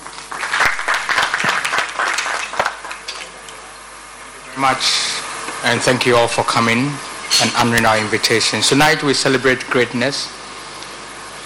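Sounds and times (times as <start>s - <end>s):
audience applause: 0.0s - 3.4s
speech: 4.6s - 10.4s.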